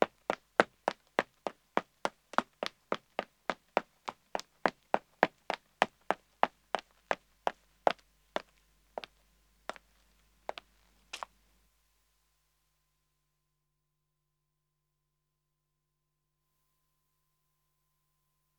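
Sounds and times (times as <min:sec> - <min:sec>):
man running on pavement: 0:00.0 - 0:09.1
footsteps on pavement: 0:00.0 - 0:11.3.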